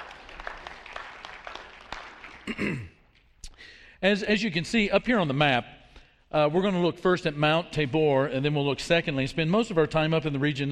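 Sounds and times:
group clapping: 0.0 - 3.3
speech: 2.5 - 3.0, 4.0 - 10.6.

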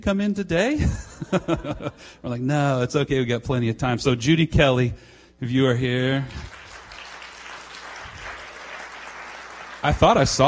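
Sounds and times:
speech: 0.0 - 6.6, 9.8 - 10.4
laughter: 0.8 - 2.2
audience clapping: 6.2 - 10.4.

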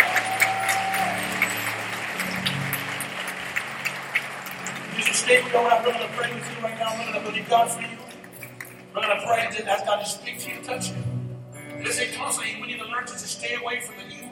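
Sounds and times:
crowd clapping: 0.0 - 9.1
speech: 5.3 - 8.1, 9.0 - 11.1, 11.8 - 14.3.

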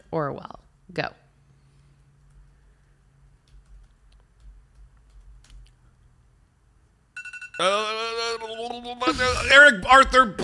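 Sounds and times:
speech: 0.1 - 1.2, 7.6 - 10.4
quiz timer alarm going off: 7.2 - 9.0.

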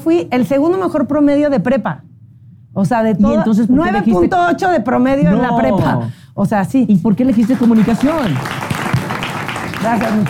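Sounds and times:
speech: 0.0 - 2.1, 2.8 - 8.6, 9.8 - 10.2
applause: 7.3 - 10.2.

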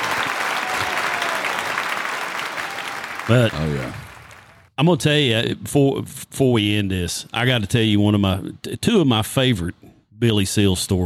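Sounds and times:
applause: 0.0 - 4.7
speech: 3.3 - 4.0, 4.8 - 11.0.

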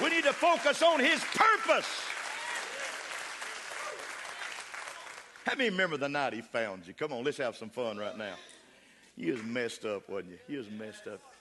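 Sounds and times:
audience clapping hands: 0.0 - 6.2
speech: 0.4 - 2.1, 5.5 - 8.5, 9.2 - 11.3.

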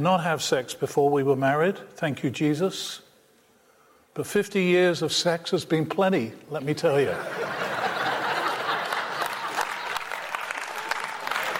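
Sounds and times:
speech: 0.0 - 3.0, 4.2 - 7.6
laughter: 7.0 - 10.4
audience applause: 7.7 - 11.5.

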